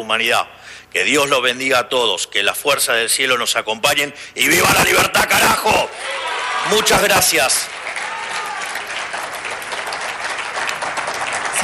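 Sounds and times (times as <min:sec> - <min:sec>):
speech: 0:00.0 - 0:07.9
sustained applause from a large crowd: 0:06.0 - 0:11.6.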